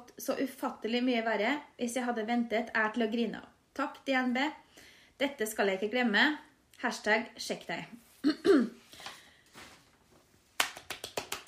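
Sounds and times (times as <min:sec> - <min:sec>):
speech: 0:00.2 - 0:08.8
clapping: 0:10.6 - 0:11.4.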